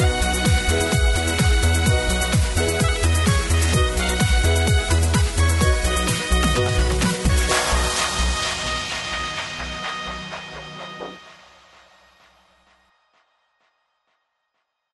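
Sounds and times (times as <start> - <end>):
square dance music rhythm track: 0.0 - 11.4.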